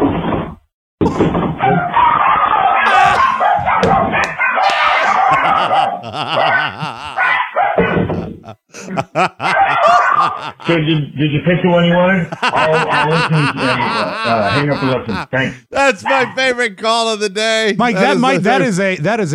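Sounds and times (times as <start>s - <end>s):
chihuahuas barking and yapping: 1.6s - 8.0s, 9.4s - 10.7s, 13.6s - 14.9s
laughter: 2.9s - 3.3s, 4.7s - 16.3s, 17.6s - 18.9s
speech: 6.0s - 7.1s, 8.9s - 9.6s, 10.4s - 19.3s.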